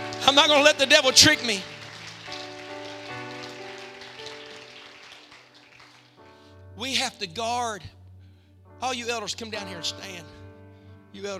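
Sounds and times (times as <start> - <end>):
audience clapping hands: 0.0 - 6.4
speech: 0.3 - 1.7, 6.8 - 8.0, 8.8 - 10.4, 11.1 - 11.3.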